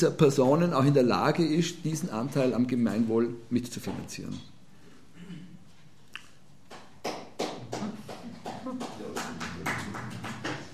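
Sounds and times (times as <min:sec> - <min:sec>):
speech: 0:00.0 - 0:04.5
audience applause: 0:07.1 - 0:10.7.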